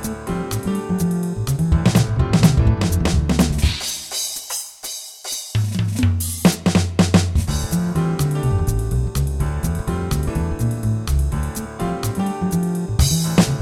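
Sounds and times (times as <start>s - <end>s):
fast swing: 1.0s - 4.0s, 5.8s - 13.6s.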